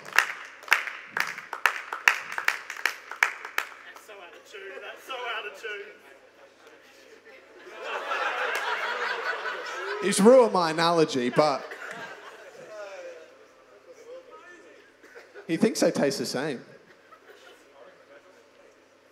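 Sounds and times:
audience clapping: 0:00.0 - 0:04.3, 0:08.4 - 0:09.0
speech: 0:05.5 - 0:06.1, 0:10.0 - 0:11.7, 0:15.5 - 0:16.8
laughter: 0:06.9 - 0:15.9, 0:16.6 - 0:18.4.

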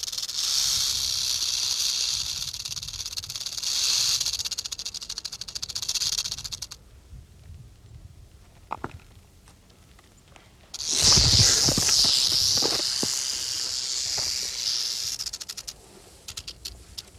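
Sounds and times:
rattlesnake rattling: 0:00.0 - 0:06.8, 0:10.7 - 0:17.1.

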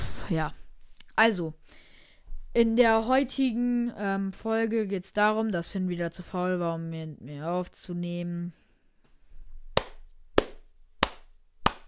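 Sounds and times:
speech: 0:00.3 - 0:00.6, 0:01.2 - 0:01.8, 0:02.6 - 0:08.6
hand claps from a single person: 0:09.8 - 0:11.8.

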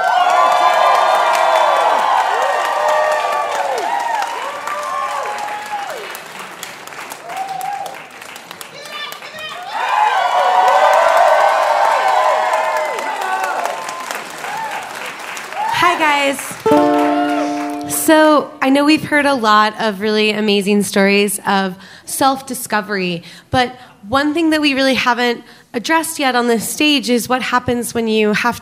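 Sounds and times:
people cheering and whooping: 0:00.0 - 0:06.2, 0:07.2 - 0:08.1, 0:08.8 - 0:17.9
large audience applause: 0:00.0 - 0:18.2
speech: 0:18.7 - 0:28.6.

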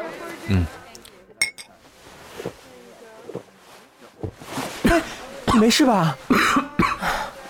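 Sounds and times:
speech: 0:00.5 - 0:00.8, 0:05.6 - 0:06.6
glasses clinking in a toast: 0:01.4 - 0:01.7.

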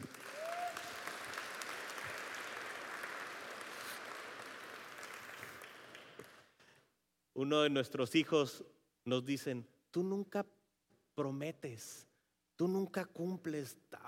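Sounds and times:
audience applause: 0:00.0 - 0:06.6
speech: 0:07.4 - 0:10.6, 0:11.2 - 0:14.0.

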